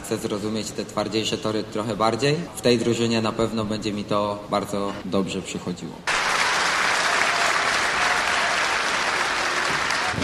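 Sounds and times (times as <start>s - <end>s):
speech: 0.1s - 6.2s
crowd of fans applauding: 6.1s - 10.2s.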